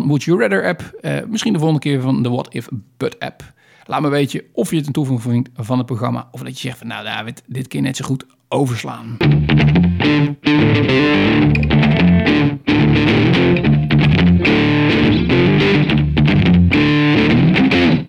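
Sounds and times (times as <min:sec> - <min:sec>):
speech: 0:00.1 - 0:13.7
short loud distorted electric guitar riff jingle: 0:09.2 - 0:18.0.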